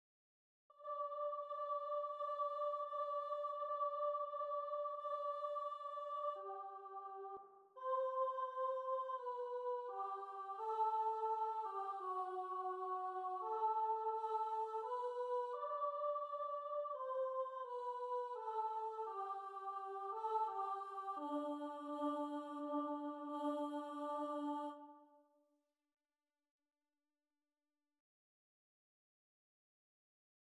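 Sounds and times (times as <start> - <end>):
choir singing: 0.7 - 25.1.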